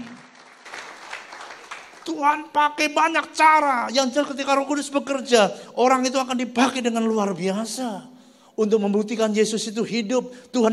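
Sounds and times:
audience applause: 0.0 - 2.2
speech: 2.1 - 10.7.

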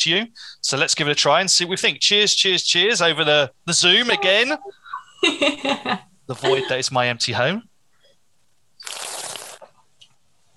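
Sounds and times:
speech: 0.0 - 7.7
laughter: 3.1 - 6.9
person slurping wine: 8.8 - 9.6.

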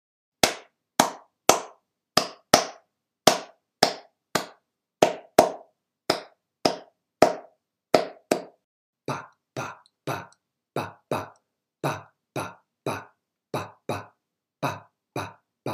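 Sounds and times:
hands clapping a rhythm: 0.4 - 15.7.

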